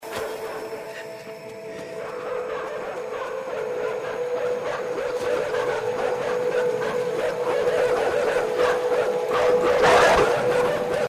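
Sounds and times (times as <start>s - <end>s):
dog barking: 2.3s - 11.0s.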